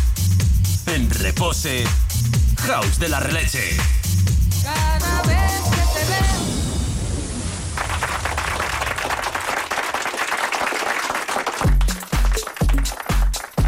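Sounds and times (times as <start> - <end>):
electronic beat with deep thumping bass pulses: 0.0 - 6.4, 11.6 - 13.6
speech: 1.2 - 4.0, 4.6 - 6.7
hand clapping in a music track: 7.8 - 13.6.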